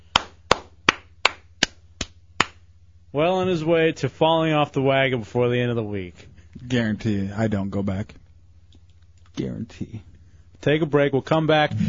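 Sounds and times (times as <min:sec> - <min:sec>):
hand claps: 0:00.0 - 0:02.7
speech: 0:03.1 - 0:08.2, 0:09.4 - 0:11.8.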